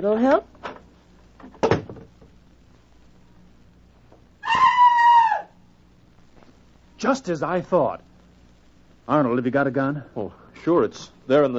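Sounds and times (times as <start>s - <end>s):
speech: 0.0s - 0.5s, 7.0s - 8.1s, 9.1s - 11.5s
woman screaming behind a closed bathroom door: 4.4s - 5.6s.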